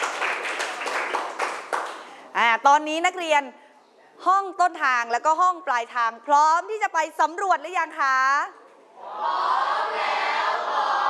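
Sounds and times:
students clapping: 0:00.0 - 0:02.2
speech: 0:02.4 - 0:03.6, 0:04.2 - 0:10.2.

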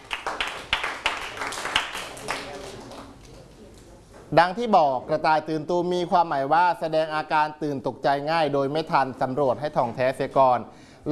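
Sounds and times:
class clapping: 0:00.0 - 0:03.3
speech: 0:04.3 - 0:11.1.

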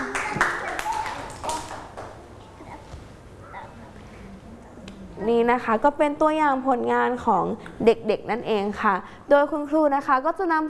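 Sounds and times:
children clapping hands: 0:00.0 - 0:02.2
speech: 0:05.5 - 0:10.6.

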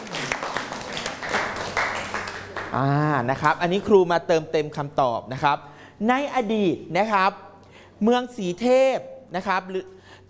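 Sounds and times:
classroom applause for students: 0:00.0 - 0:03.0
speech: 0:02.7 - 0:10.2.

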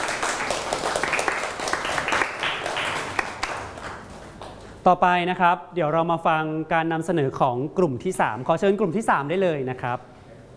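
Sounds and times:
crowd applause for a presenting group: 0:00.0 - 0:04.7
speech: 0:04.8 - 0:10.1.

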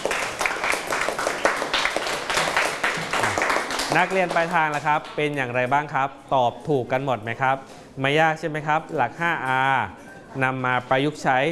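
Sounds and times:
students clapping in a classroom: 0:00.0 - 0:05.2
speech: 0:03.9 - 0:11.5.

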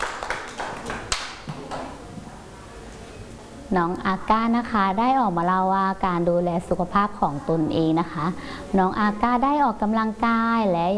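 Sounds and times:
children clapping: 0:00.0 - 0:02.0
speech: 0:03.7 - 0:10.9.

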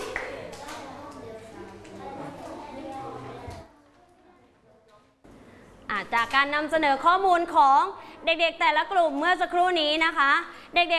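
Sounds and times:
room of students applauding: 0:00.0 - 0:00.6
students chatter: 0:00.0 - 0:05.2
speech: 0:06.0 - 0:10.9.

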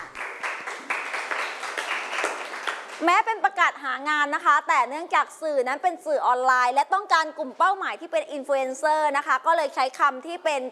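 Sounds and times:
students in a class clapping for a classmate: 0:00.0 - 0:03.0
speech: 0:03.0 - 0:10.7.

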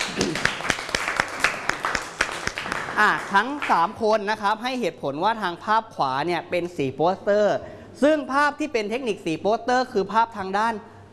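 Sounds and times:
classroom applause: 0:00.0 - 0:03.9
speech: 0:03.0 - 0:10.9.

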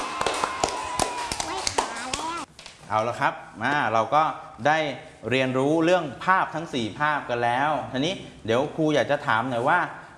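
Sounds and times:
hand clapping: 0:00.0 - 0:02.5
speech: 0:02.9 - 0:10.0.

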